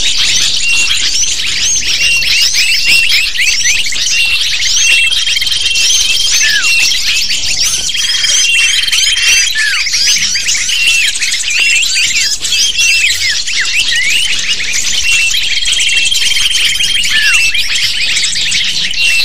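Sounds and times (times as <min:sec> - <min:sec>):
lovebird flock chirping and squawking: 0:00.0 - 0:19.2.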